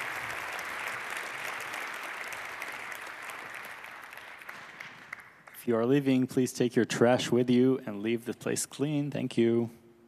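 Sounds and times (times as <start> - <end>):
audience applause: 0.0 - 5.6
speech: 5.6 - 9.8.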